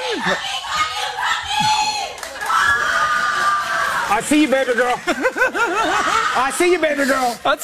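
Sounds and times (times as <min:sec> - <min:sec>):
crowd shouting and cheering: 0:00.0 - 0:07.6
speech: 0:00.2 - 0:00.8, 0:04.1 - 0:07.6
laughter: 0:02.9 - 0:07.4.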